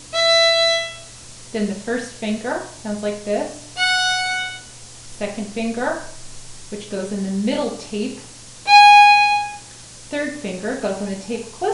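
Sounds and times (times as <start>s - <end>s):
open E string, the highest string, ringing: 0.0s - 1.2s, 3.8s - 4.8s, 8.7s - 9.7s
speech: 1.5s - 3.7s, 5.2s - 8.3s, 10.1s - 11.7s.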